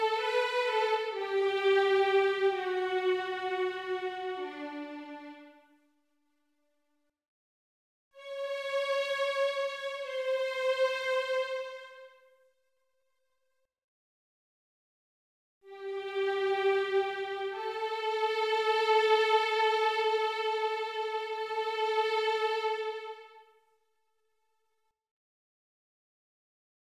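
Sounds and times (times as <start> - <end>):
violin piece for children: 0.0 - 5.8, 8.2 - 12.3, 15.7 - 23.6.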